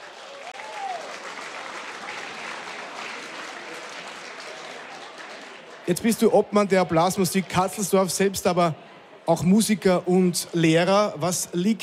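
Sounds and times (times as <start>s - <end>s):
audience applause: 0.0s - 6.2s
speech: 5.8s - 11.8s.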